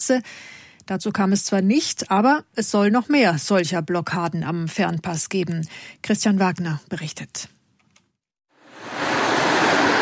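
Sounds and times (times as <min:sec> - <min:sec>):
speech: 0:00.0 - 0:07.6
cars and convertibles passing: 0:08.7 - 0:10.0
loud road traffic: 0:08.7 - 0:10.0.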